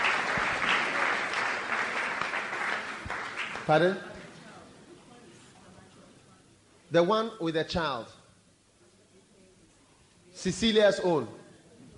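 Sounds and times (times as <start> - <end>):
audience clapping: 0.0 - 4.4
speech: 3.7 - 4.1, 6.9 - 8.2, 10.4 - 11.4.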